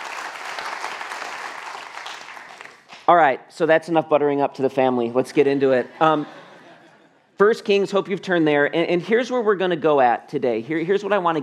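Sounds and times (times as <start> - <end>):
audience applause in a church for the pastor: 0.0 - 3.0
speech: 3.1 - 6.4, 7.4 - 11.4
laughter: 5.4 - 7.2.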